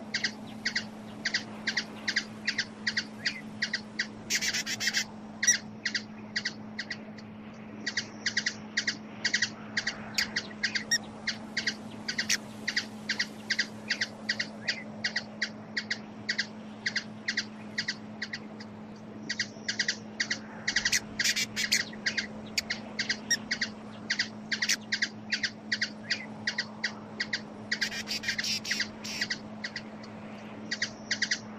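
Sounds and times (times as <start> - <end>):
hummingbird calls: 0.0 - 31.5.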